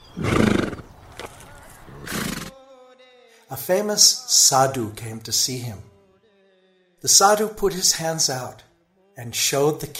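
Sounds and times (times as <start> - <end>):
king's horses whinnying: 0.0 - 0.9, 1.9 - 2.6
speech: 3.5 - 5.9, 7.0 - 9.9.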